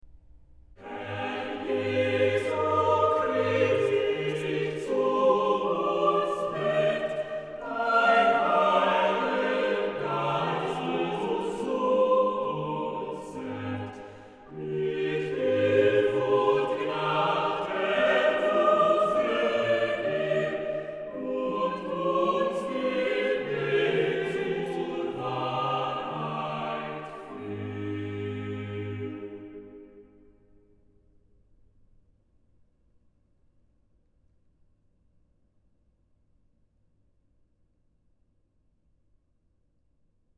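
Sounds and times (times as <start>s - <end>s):
organ chorale: 0.8s - 30.2s.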